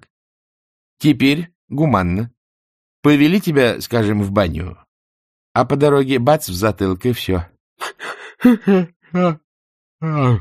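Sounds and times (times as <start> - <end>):
speech: 1.0 - 2.4, 3.0 - 4.8, 5.6 - 7.5, 8.4 - 9.4, 10.0 - 10.3
person yawning: 7.8 - 9.4, 10.0 - 10.3.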